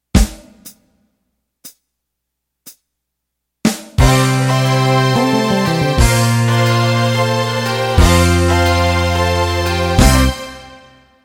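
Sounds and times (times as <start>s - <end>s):
country shuffle music ending: 4.0s - 10.4s.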